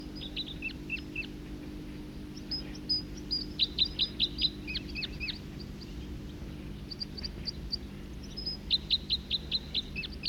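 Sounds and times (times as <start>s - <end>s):
songbirds singing in song flight: 0.0s - 10.2s.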